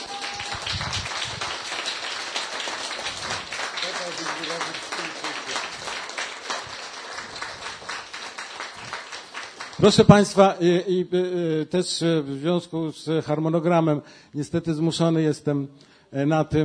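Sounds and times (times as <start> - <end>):
audience applause: 0.0 - 10.2
speech: 9.8 - 16.6.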